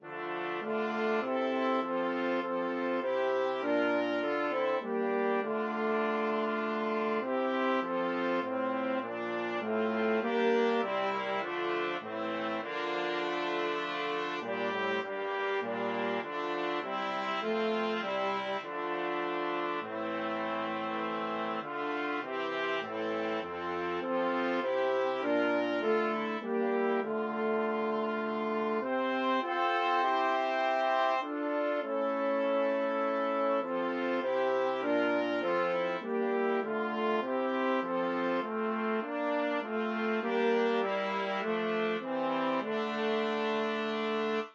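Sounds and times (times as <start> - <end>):
brass quartet playing: 0.0 - 44.5.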